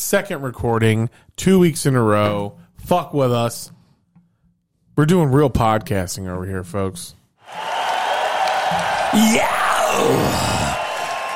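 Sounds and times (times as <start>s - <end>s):
speech: 0.0s - 3.8s, 5.0s - 7.7s, 8.7s - 10.7s
crowd cheering and whooping: 7.4s - 11.3s.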